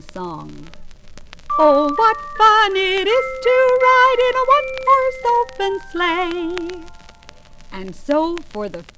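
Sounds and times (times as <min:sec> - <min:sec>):
Christmas song: 0:01.5 - 0:08.6.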